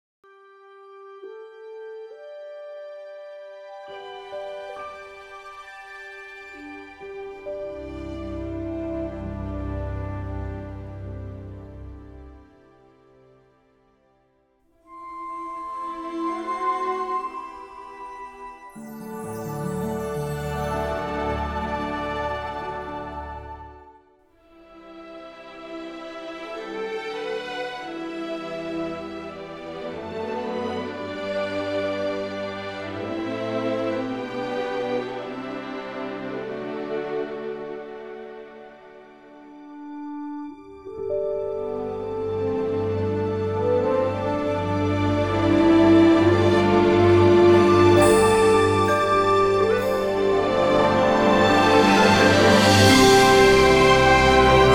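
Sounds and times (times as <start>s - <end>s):
music: 0.2s - 54.7s.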